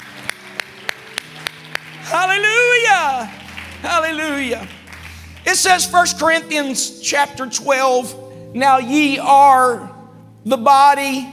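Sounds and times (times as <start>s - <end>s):
audience clapping in unison: 0.0s - 6.2s
speech: 3.2s - 4.8s, 5.4s - 11.3s.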